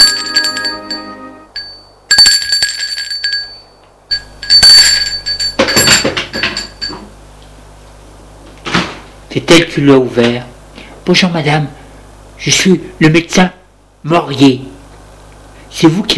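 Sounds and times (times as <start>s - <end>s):
apartment doorbell ringing: 0.0s - 7.1s
speech: 9.5s - 10.5s, 11.1s - 11.8s, 12.4s - 14.7s, 15.7s - 16.1s.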